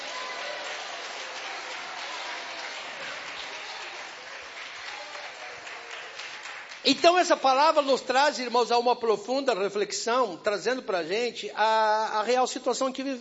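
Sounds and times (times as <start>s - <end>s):
church audience applause: 0.0s - 7.2s
speech: 6.8s - 13.1s.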